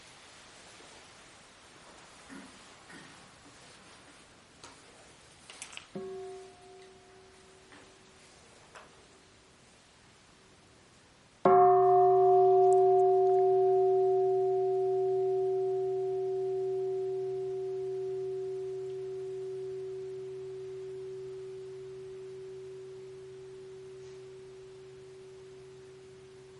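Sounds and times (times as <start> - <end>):
meditation bell ringing: 6.0 - 7.8, 11.5 - 26.5.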